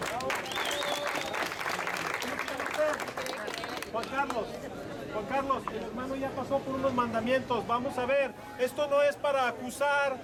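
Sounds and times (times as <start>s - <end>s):
audience applause: 0.0s - 4.4s
speech: 4.0s - 10.2s.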